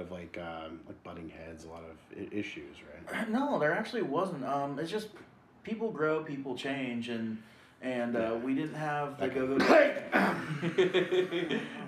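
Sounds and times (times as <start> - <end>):
speech: 0.0 - 11.8
cough: 9.6 - 10.6
laughter: 10.2 - 11.8.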